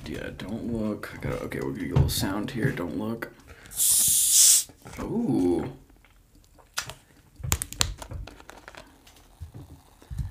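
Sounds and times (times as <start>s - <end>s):
speech: 0.2s - 4.1s, 5.0s - 5.8s
soda fizzing: 3.7s - 4.7s.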